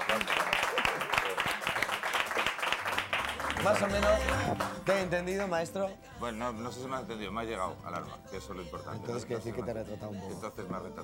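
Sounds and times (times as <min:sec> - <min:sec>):
audience applause: 0:00.0 - 0:05.0
speech: 0:03.6 - 0:11.0.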